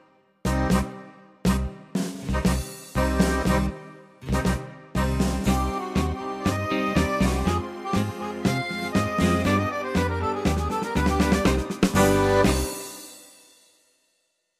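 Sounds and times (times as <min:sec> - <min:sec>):
tango music: 0:00.5 - 0:12.9.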